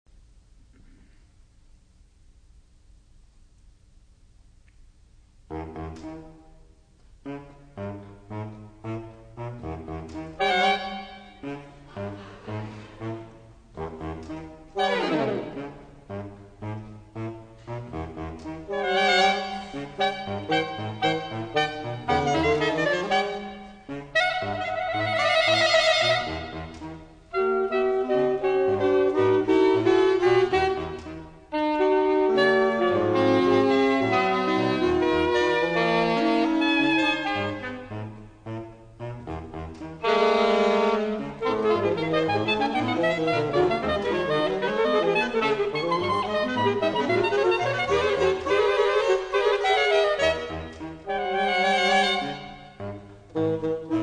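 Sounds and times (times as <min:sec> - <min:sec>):
mood music: 0:05.5 - 0:54.0.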